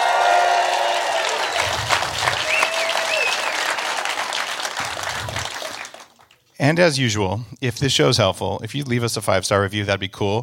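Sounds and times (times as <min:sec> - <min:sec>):
faint whoops: 0:00.0 - 0:03.9
studio audience applause: 0:00.0 - 0:06.4
speech: 0:06.6 - 0:10.4.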